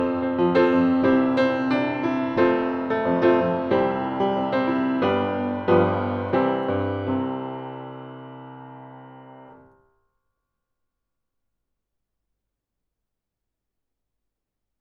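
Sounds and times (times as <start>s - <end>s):
piano hammer-on: 0.0s - 9.7s.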